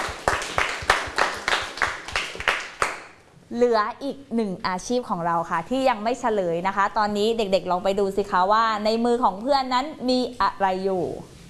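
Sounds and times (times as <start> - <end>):
children clapping hands: 0.0 - 3.2
speech: 3.5 - 11.3.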